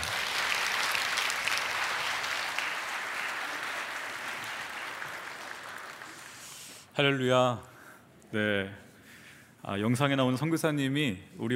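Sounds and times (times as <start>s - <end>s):
audience clapping: 0.0s - 6.9s
speech: 7.0s - 7.7s, 8.3s - 8.8s, 9.6s - 11.5s.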